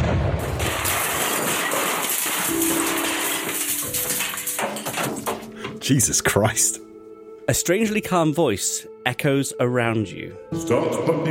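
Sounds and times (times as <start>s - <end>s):
crashing roar of metal: 0.0s - 5.8s
speech: 5.9s - 6.8s, 7.5s - 11.2s.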